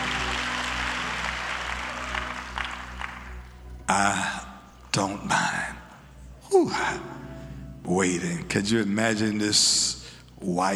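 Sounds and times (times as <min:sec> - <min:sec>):
audience clapping hands: 0:00.0 - 0:05.9
speech: 0:03.9 - 0:04.4, 0:05.0 - 0:05.6, 0:06.5 - 0:07.2, 0:07.8 - 0:10.7.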